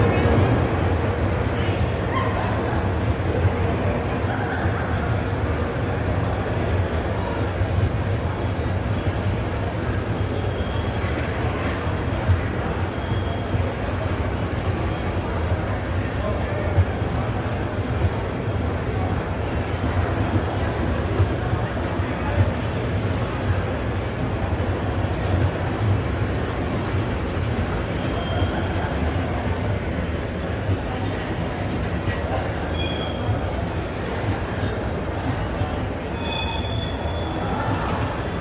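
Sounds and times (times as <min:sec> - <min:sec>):
trains and machinery rumbling in a busy train station: 0:00.0 - 0:38.3
voices murmuring: 0:00.0 - 0:38.3
brighter clinks, squeals and short tones: 0:32.6 - 0:33.4, 0:36.0 - 0:38.3.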